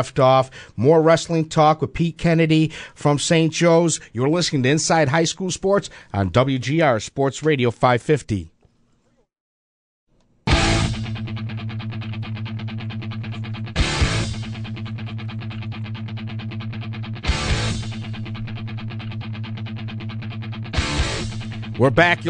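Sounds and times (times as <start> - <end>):
speech: 0.0 - 8.5, 21.8 - 22.2
electric guitar rock music: 10.5 - 22.2.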